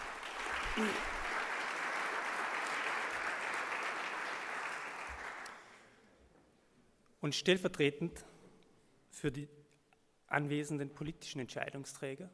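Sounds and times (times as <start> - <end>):
audience applause: 0.0 - 5.9
speech: 0.8 - 1.1, 7.2 - 8.4, 9.2 - 9.6, 10.3 - 12.3.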